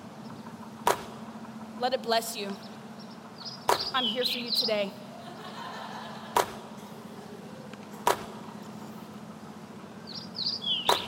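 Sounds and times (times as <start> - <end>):
high bird chirps: 0.0 - 6.3, 6.9 - 11.0
steady low hum: 0.0 - 11.0
speech: 1.8 - 2.8, 3.9 - 5.0
laughter: 5.1 - 7.7
basketball swishing through the net: 8.0 - 8.4.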